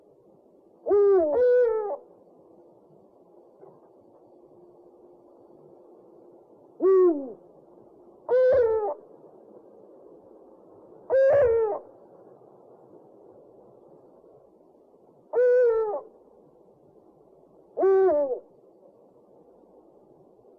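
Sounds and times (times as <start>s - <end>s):
owl giving a two-part hoot: 0.8s - 2.1s, 6.8s - 7.4s, 8.2s - 9.0s, 11.1s - 11.9s, 15.3s - 16.2s, 17.7s - 18.5s.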